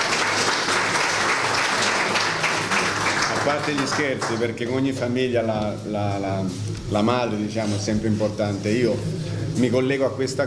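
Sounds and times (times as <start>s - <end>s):
audience applause: 0.0s - 4.6s
speech: 3.4s - 10.4s.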